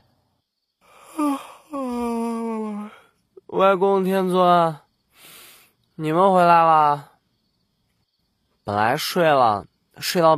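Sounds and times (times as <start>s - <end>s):
person yawning: 0.9s - 3.1s
speech: 3.6s - 4.8s, 6.0s - 7.1s, 8.7s - 10.3s.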